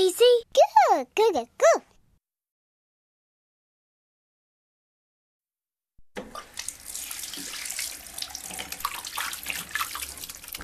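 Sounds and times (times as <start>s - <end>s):
speech: 0.0s - 1.8s
tap running into a sink while hands and face are washed: 6.1s - 10.6s
water splashes: 6.2s - 10.6s.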